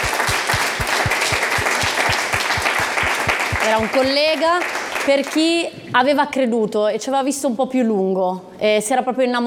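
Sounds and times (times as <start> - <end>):
steady low thumping pulse: 0.0 - 4.2
audience applause: 0.0 - 5.1
speech: 3.7 - 9.4.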